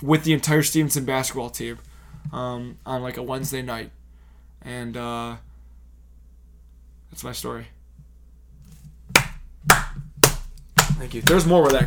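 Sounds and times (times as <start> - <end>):
speech: 0.0 - 4.0, 4.6 - 5.5, 7.1 - 7.8, 11.0 - 11.8
one person clapping hands: 9.2 - 11.8.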